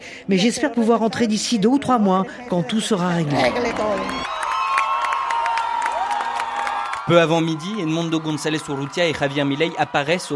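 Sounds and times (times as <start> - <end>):
speech: 0.2 - 4.2, 7.1 - 10.3
crowd cheering: 3.4 - 10.3.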